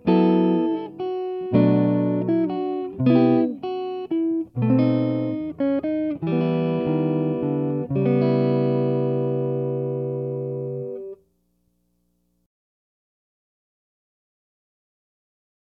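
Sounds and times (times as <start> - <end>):
guitar melody: 0.0 - 11.2.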